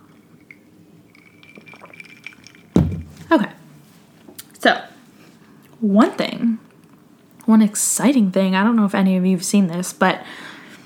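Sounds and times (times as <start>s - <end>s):
sipping a drink: 0.0s - 3.2s
speech: 3.3s - 3.6s, 4.6s - 4.9s, 5.8s - 6.7s, 7.5s - 10.6s.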